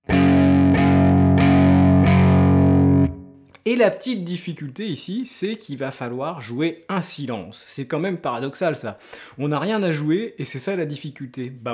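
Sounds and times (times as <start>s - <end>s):
electric guitar power chord: 0.0s - 3.4s
speech: 3.6s - 11.7s.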